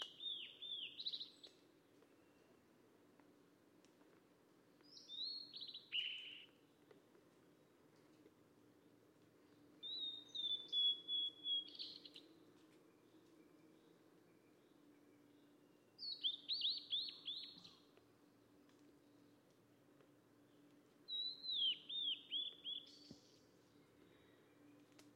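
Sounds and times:
mangrove blue flycatcher whistled song phrases: 0.0 - 1.5, 4.9 - 6.5, 9.8 - 12.3, 16.0 - 17.8, 21.1 - 23.4.

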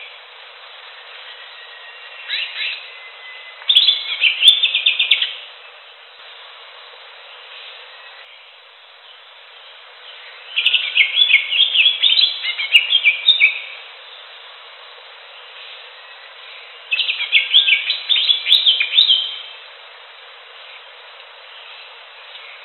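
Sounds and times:
Greater green leafbird song of rapid chirps and slurred whistles: 1.3 - 5.3, 10.6 - 13.7, 16.9 - 19.5.

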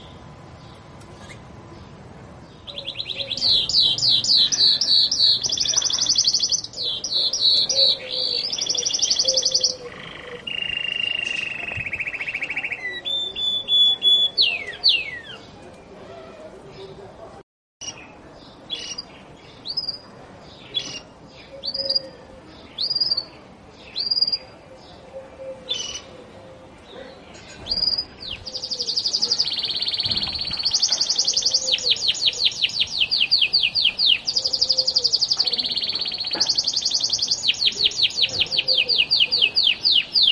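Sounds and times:
Gloster canary: 2.7 - 16.4, 17.8 - 20.0, 25.2 - 26.1, 27.0 - 40.3.

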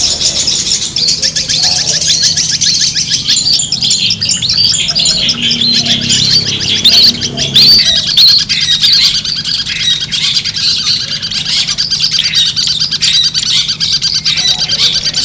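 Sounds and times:
long-tailed shrike singing in a songbird contest simulation: 0.0 - 15.2.

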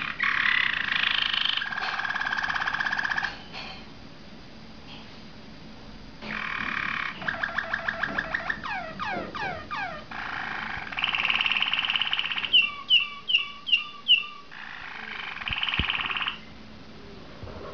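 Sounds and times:
Waterslager canary trilling song: 0.0 - 3.4, 6.2 - 16.6.

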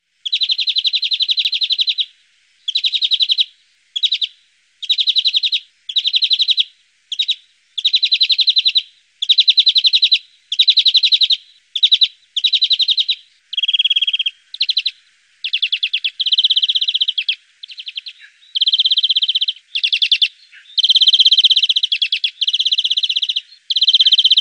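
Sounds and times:
greenfinch song with rattling trill and twittering chirps: 0.2 - 24.3.

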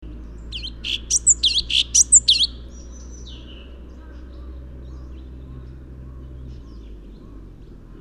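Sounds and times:
Orange-bellied leafbird chattering high notes with squeaky whistle: 0.6 - 2.6.

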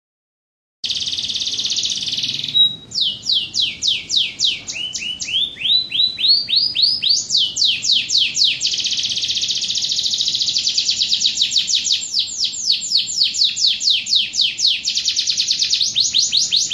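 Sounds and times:
standard domestic canary singing trills in kapal oleng style: 0.8 - 16.7.

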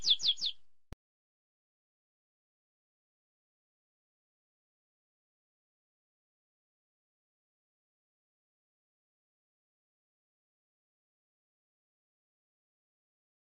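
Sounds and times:
canary song: 0.0 - 0.6.

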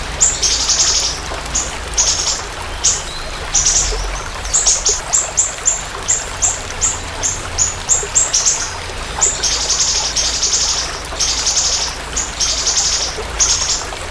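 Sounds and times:
siri-siri bird song: 0.2 - 14.0.

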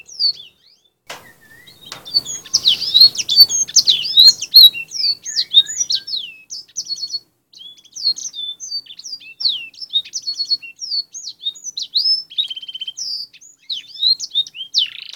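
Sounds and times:
Canary song for fill-in training: 0.0 - 15.1.

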